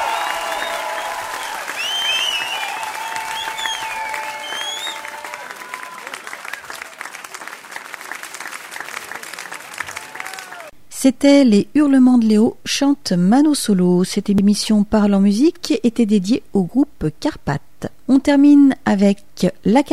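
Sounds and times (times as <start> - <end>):
shrill whistles: 0.0 - 6.8
crowd applauding: 0.0 - 10.8
speech: 11.0 - 19.9.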